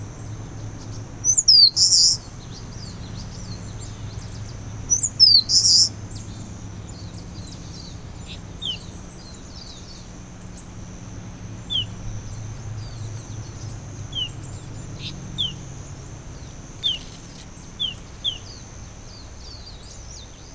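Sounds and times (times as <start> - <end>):
Eastern crowned warbler Phylloscopus coronatus: 0.0 - 20.5.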